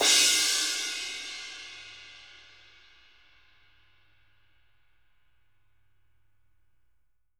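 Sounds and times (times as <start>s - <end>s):
dark crash cymbal: 0.0s - 3.7s.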